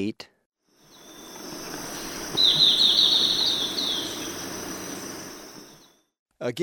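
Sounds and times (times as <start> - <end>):
insects droning: 0.7 - 6.0
golden-faced tyrannulet high notes: 1.0 - 5.9.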